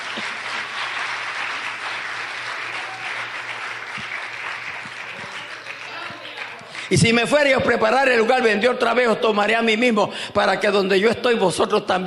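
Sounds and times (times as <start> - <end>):
audience applauding: 0.0 - 7.4
speech: 6.9 - 12.0.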